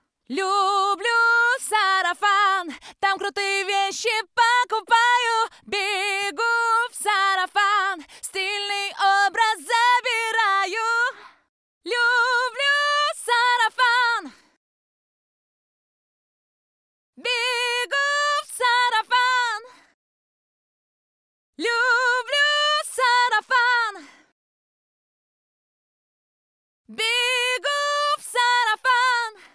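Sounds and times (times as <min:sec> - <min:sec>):
vocals: 0:00.0 - 0:14.6, 0:17.2 - 0:20.0, 0:21.6 - 0:24.3, 0:26.9 - 0:29.5.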